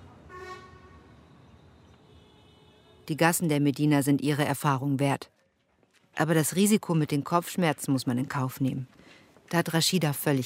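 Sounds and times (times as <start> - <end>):
car horn in the narrow alleys of the Medina: 0.3 - 3.0
speech: 3.1 - 5.4, 6.2 - 10.4.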